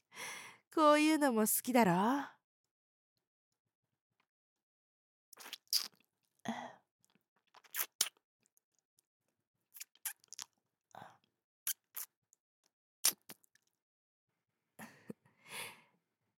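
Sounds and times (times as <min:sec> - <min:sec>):
speech: 0:00.8 - 0:02.4
wet kissing sounds with an outstretched tongue: 0:05.4 - 0:06.0, 0:07.6 - 0:08.2, 0:09.8 - 0:10.5, 0:11.7 - 0:12.1, 0:13.0 - 0:13.4.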